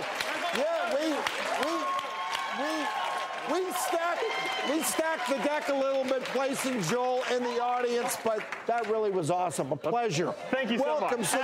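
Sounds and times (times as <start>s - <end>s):
audience applause for Dr. Ballard's younger brother: 0.0s - 9.6s
voices whooping: 0.5s - 5.9s
speech: 3.8s - 11.4s.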